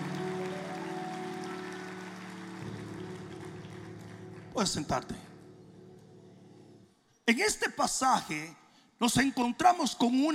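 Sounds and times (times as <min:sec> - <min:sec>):
audience applause: 0:00.0 - 0:05.5
speech: 0:04.6 - 0:05.3, 0:07.3 - 0:10.3.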